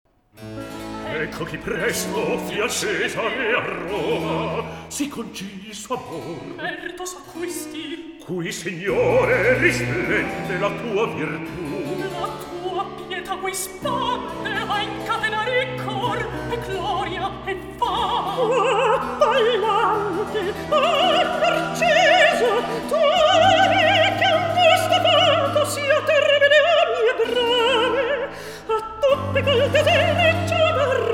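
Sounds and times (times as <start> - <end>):
recitative singing: 0.9 - 31.1.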